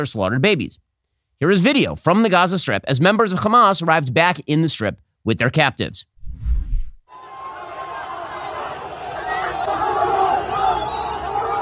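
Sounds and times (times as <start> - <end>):
speech: 0.0 - 6.5
enormous crowd cheering and celebrating: 7.1 - 11.6.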